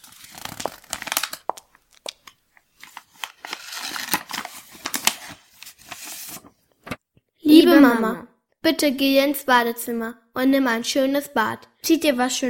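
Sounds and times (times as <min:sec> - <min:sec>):
letter paper being unfolded: 0:00.0 - 0:07.0
speech: 0:07.8 - 0:12.4.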